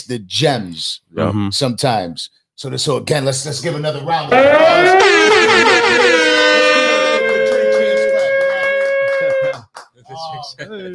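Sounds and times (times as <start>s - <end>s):
speech: 0.0s - 6.2s, 10.4s - 10.9s
air horn sound effect: 4.3s - 9.6s.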